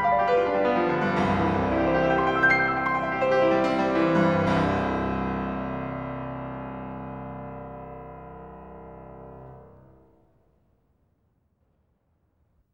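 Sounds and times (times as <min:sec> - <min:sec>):
piano etudes in C major: 0:00.0 - 0:10.1.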